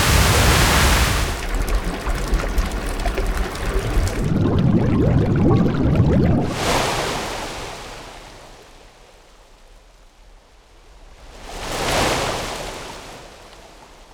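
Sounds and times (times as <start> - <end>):
water rushing and surging in waves: 0.0 - 7.4.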